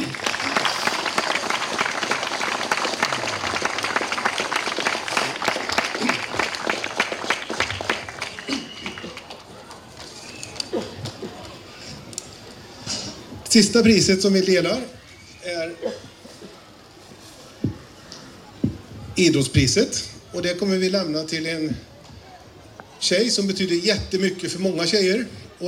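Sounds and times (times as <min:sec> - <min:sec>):
crowd applauding loudly: 0:00.0 - 0:11.7
speech: 0:13.6 - 0:15.0, 0:19.2 - 0:21.9, 0:23.0 - 0:25.6.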